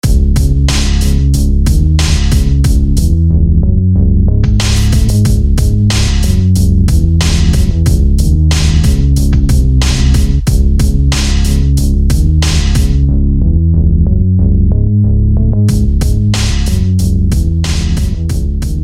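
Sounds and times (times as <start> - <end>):
bass: 0.0 - 18.8.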